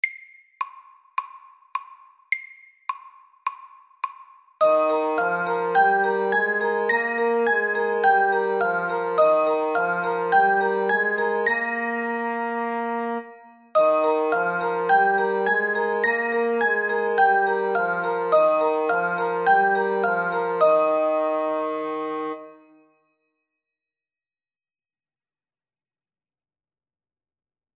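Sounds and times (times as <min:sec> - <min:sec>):
fast etude: 0:04.6 - 0:22.7.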